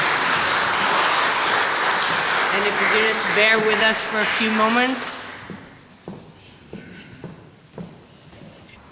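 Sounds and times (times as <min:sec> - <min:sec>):
round of applause: 0:00.0 - 0:05.5
speech: 0:02.6 - 0:05.2.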